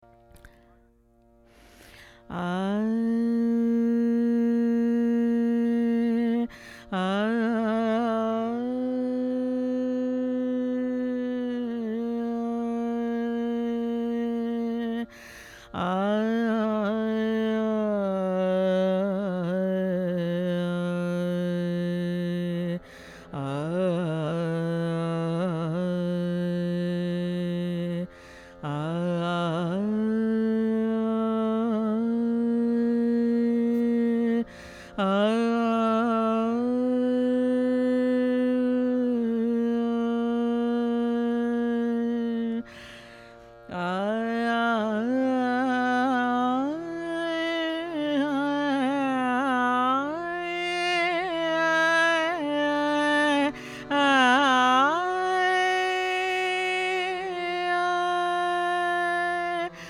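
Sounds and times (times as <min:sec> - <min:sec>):
vocals: 0:00.0 - 0:59.8.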